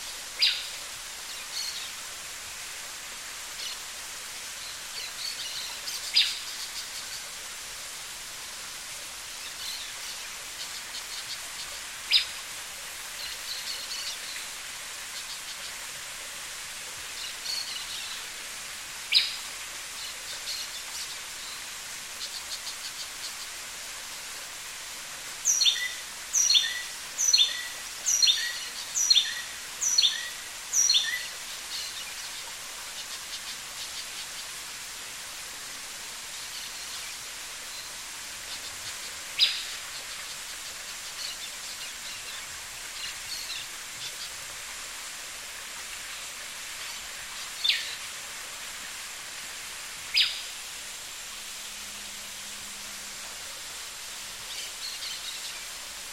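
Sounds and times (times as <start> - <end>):
rustling leaves: 0.0 - 56.1.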